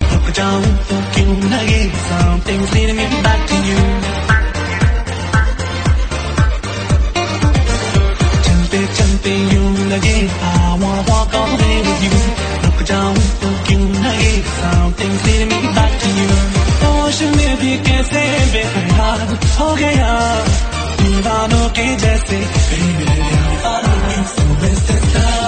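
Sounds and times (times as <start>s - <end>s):
Hindi music mix: 0.0s - 25.4s.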